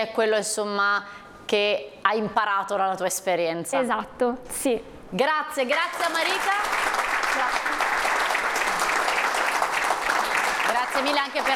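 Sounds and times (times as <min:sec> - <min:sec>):
speech: 0:00.0 - 0:07.8, 0:11.0 - 0:11.5
audience applause: 0:05.8 - 0:11.5.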